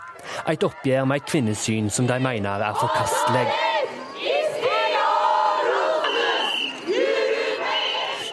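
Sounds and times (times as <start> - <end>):
speech: 0.2 - 3.7
demonstrators chanting rhythmic slogans: 1.1 - 8.3.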